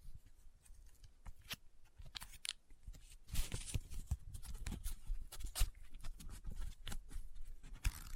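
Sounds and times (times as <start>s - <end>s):
paper being folded, rubbed and crinkled: 2.2s - 8.1s.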